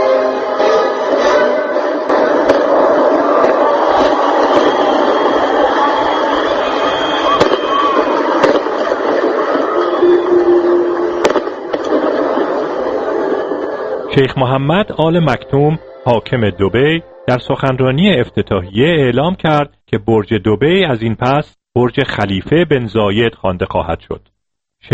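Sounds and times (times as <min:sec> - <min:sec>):
crowd noise: 0:00.0 - 0:18.2
fireworks banging: 0:02.0 - 0:14.0
speech: 0:14.2 - 0:24.9.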